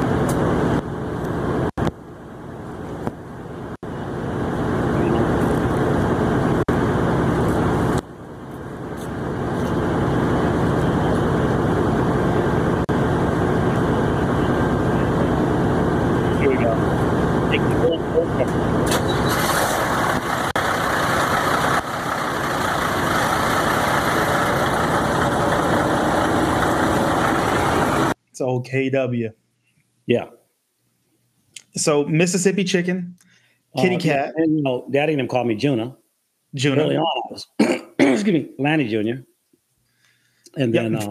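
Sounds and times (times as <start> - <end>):
big rig truck engine starting up and idling: 0.0 - 28.2
speech: 28.4 - 29.4, 30.1 - 30.3, 31.8 - 39.3, 40.5 - 41.1.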